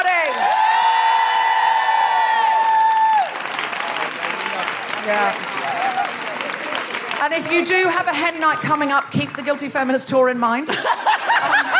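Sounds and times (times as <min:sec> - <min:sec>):
audience applause and cheering: 0:00.0 - 0:07.9
speech: 0:05.1 - 0:05.6, 0:07.3 - 0:11.7
laughter: 0:05.5 - 0:07.7, 0:10.7 - 0:11.7.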